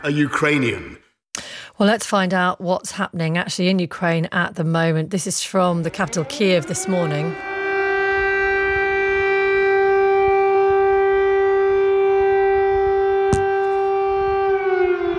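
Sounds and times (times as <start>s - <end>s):
speech: 0.0s - 1.0s, 1.8s - 7.5s
air raid siren: 5.6s - 15.1s.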